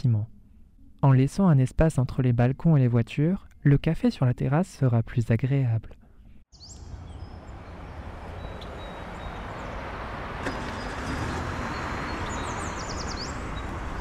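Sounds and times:
speech: 0.0s - 0.4s, 1.0s - 6.8s
birds chirping outdoors: 6.5s - 13.9s.

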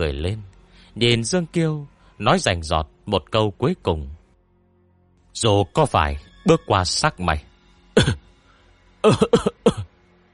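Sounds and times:
speech: 0.0s - 4.2s, 5.4s - 8.2s, 9.0s - 9.8s
man coughing dry and harsh, choking on blood in his mouth: 8.0s - 8.2s, 9.0s - 9.9s.

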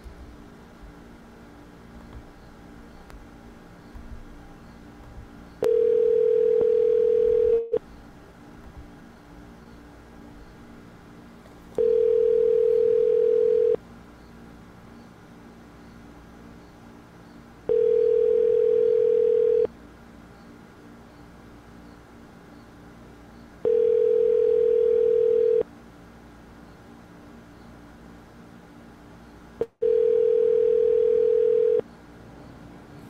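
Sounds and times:
telephone tone while placing a call: 5.6s - 7.8s, 11.8s - 13.8s, 17.7s - 19.7s, 23.7s - 25.6s, 29.8s - 31.8s.

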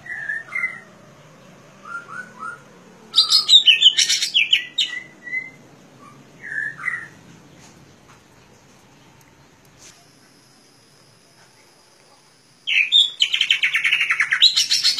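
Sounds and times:
leafbird singing chirping warbled notes: 0.0s - 7.8s, 12.1s - 14.9s.

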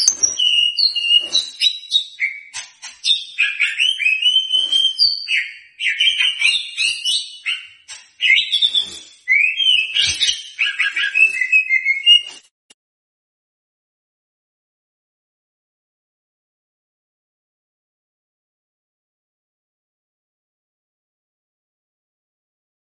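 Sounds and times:
White-rumped shama whistled song: 0.0s - 12.5s.

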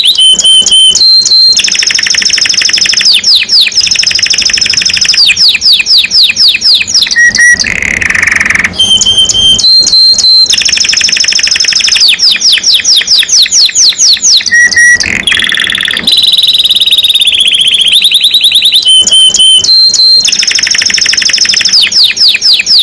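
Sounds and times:
canary singing: 0.0s - 22.8s.

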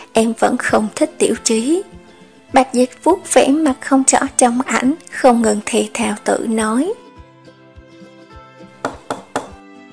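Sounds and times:
speech: 0.2s - 7.0s
firm knocks on a door: 8.8s - 9.6s.

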